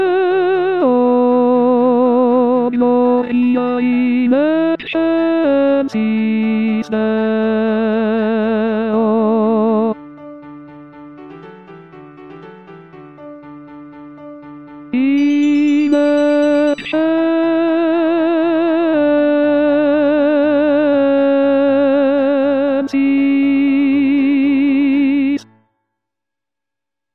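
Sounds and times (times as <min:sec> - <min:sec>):
tenor singing choral piece: 0:00.0 - 0:10.1, 0:14.9 - 0:25.5.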